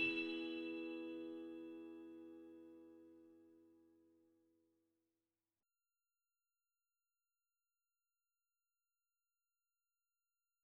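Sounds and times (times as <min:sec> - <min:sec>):
vocals: 0:00.0 - 0:01.6.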